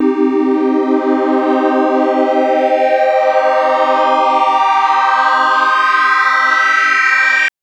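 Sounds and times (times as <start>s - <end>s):
triangle wave synth sweep pad in C minor: 0.0s - 7.5s.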